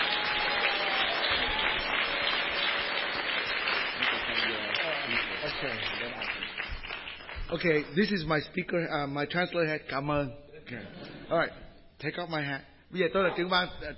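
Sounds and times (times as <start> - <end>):
assembly giving a round of applause: 0.0 - 8.4
speech: 5.6 - 6.3, 7.5 - 13.9.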